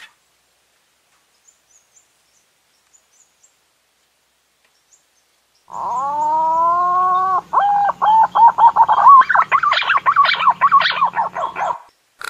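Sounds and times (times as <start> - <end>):
green pigeon whistling song: 5.9 - 11.9.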